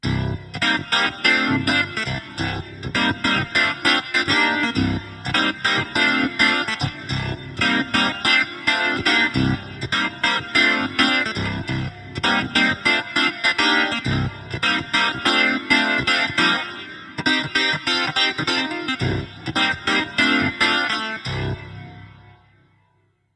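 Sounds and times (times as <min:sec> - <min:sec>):
clavinet: 0:00.0 - 0:22.3.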